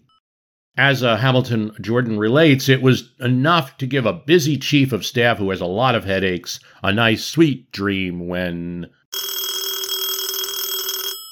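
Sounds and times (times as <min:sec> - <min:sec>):
speech: 0:00.8 - 0:09.3
telephone bell ringing: 0:09.1 - 0:11.3.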